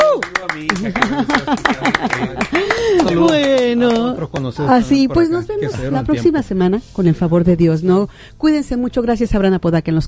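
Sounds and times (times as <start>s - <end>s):
scattered hand claps: 0.0s - 4.5s
laughter: 0.4s - 6.1s
speech: 4.5s - 10.0s.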